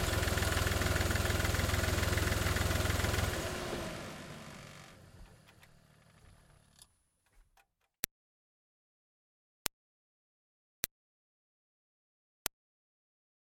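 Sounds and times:
2005 Smart Fortwo car reversing, onboard recording: 0:00.0 - 0:06.8.

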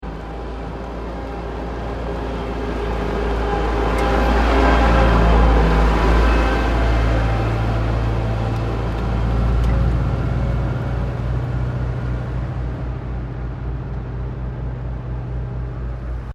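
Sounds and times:
construction vehicle passing by at road construction in Sannohe: 0:00.0 - 0:16.3.

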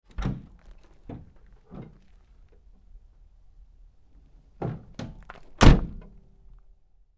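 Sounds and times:
GMC Savana truck rear door opening and closing: 0:00.1 - 0:02.0, 0:04.6 - 0:06.2.

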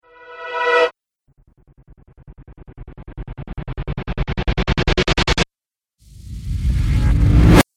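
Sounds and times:
cinematic riser: 0:00.1 - 0:00.9, 0:01.8 - 0:05.4, 0:06.0 - 0:07.6.

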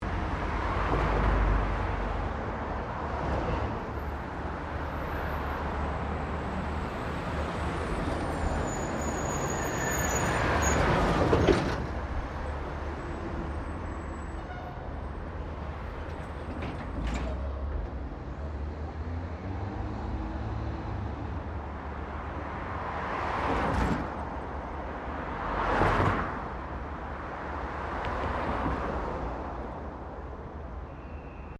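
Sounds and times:
traffic cars passing by: 0:00.0 - 0:31.5.

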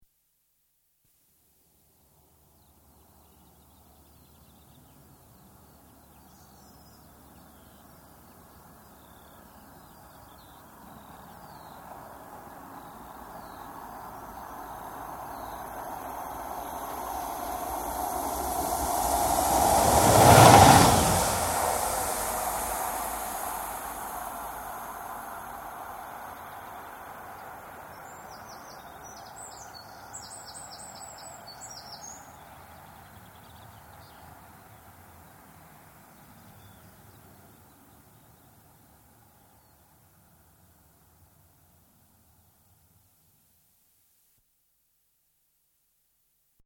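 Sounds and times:
single diesel locomotive passing under a bridge: 0:10.7 - 0:29.0.

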